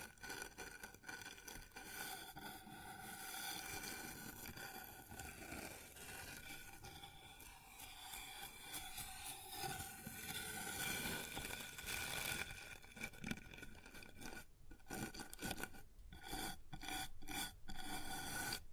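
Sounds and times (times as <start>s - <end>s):
scratching and rubbing on a wooden surface: 0.2s - 18.6s.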